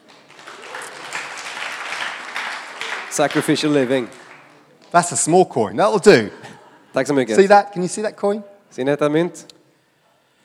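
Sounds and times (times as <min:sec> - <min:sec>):
audience applause for a volunteer during a coin trick: 0:00.0 - 0:04.9
speech: 0:03.2 - 0:04.2, 0:04.9 - 0:09.5.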